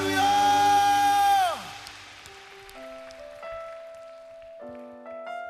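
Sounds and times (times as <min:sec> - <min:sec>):
audience applause: 0:00.0 - 0:05.0.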